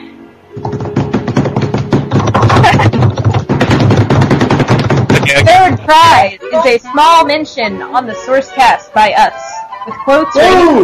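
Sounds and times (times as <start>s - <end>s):
drum roll: 0.6s - 6.2s
speech: 5.9s - 10.8s.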